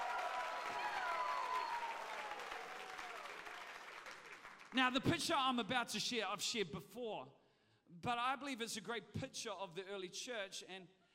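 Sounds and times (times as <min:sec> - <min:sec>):
audience shouting praise: 0:00.0 - 0:03.7
audience clapping hands: 0:00.0 - 0:04.9
speech: 0:04.7 - 0:11.0.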